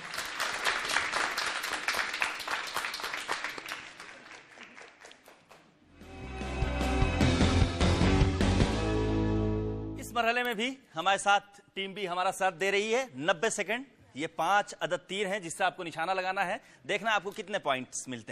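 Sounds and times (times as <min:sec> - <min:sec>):
audience applause on a game show after an archery round: 0:00.0 - 0:05.8
game show music: 0:05.9 - 0:10.0
speech: 0:10.2 - 0:18.3.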